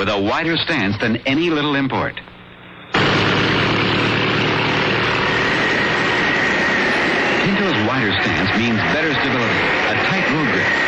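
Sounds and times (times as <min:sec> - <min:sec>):
speech: 0:00.0 - 0:02.3, 0:07.6 - 0:10.8
giant fans whipping up wind: 0:02.9 - 0:10.8.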